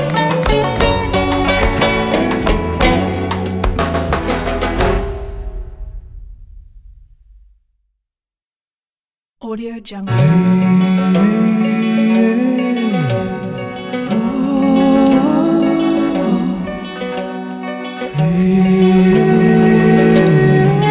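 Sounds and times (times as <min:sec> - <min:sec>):
Middle East song: 0:00.0 - 0:05.6, 0:10.1 - 0:20.9.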